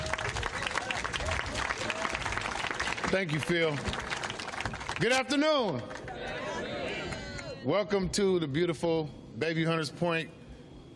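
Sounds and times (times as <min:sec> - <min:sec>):
audience applause at a community event in Bayview Hunters Point: 0:00.0 - 0:07.5
speech: 0:03.1 - 0:04.0, 0:05.0 - 0:06.0, 0:07.6 - 0:10.4.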